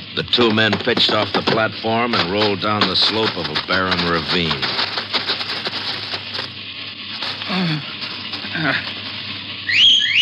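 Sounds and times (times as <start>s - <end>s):
steady crackling hiss: 0.0s - 10.2s
speech: 0.2s - 5.0s, 7.6s - 7.9s, 8.6s - 9.0s
whistle calling horses: 9.6s - 10.2s.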